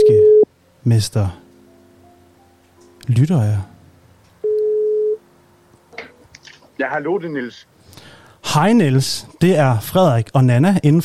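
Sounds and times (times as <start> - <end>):
telephone ringing tone while calling back: 0.0 - 0.4, 4.4 - 5.2
speech: 0.8 - 1.4, 3.1 - 3.7, 6.8 - 11.0.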